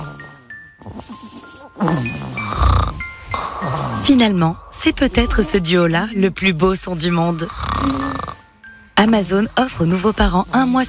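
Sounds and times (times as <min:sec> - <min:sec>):
sleeping baby snoring softly: 0:00.0 - 0:04.5, 0:07.4 - 0:08.5
speech: 0:01.8 - 0:02.6, 0:03.7 - 0:08.1, 0:09.0 - 0:10.8.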